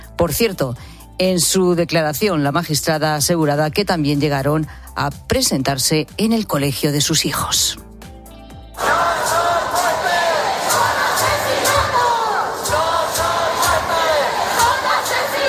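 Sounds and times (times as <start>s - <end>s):
speech: 0.2s - 7.9s
large crowd of protesters chanting slogans in unison in a square: 8.8s - 15.4s
people clapping: 8.8s - 15.4s
people shouting: 8.8s - 15.4s.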